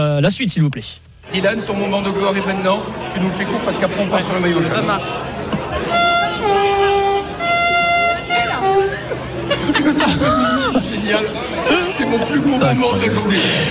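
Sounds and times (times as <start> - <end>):
speech: 0.0 - 5.3, 9.8 - 13.7
crowd chattering and exclaiming: 0.8 - 13.7
laughter: 2.1 - 7.2, 8.2 - 13.7
voice imitating a TGV high-speed train horn: 5.9 - 9.0.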